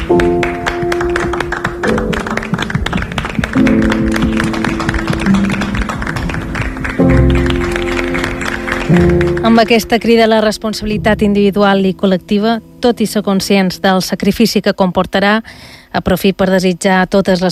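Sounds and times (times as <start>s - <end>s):
crowd applauding: 0.0s - 10.4s
sustained musical chords: 0.0s - 14.8s
speech: 9.6s - 17.5s.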